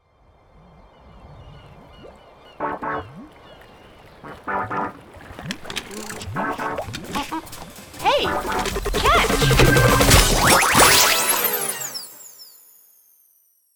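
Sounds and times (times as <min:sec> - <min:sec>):
cinematic intro cutscene music: 0:02.6 - 0:03.3, 0:04.3 - 0:12.0.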